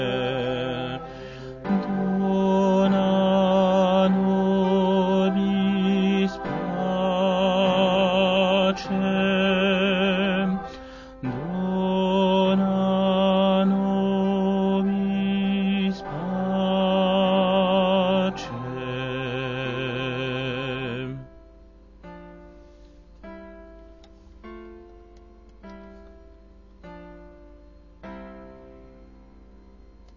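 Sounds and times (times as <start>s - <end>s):
alto voices singing a sacred chant: 0.0s - 21.3s.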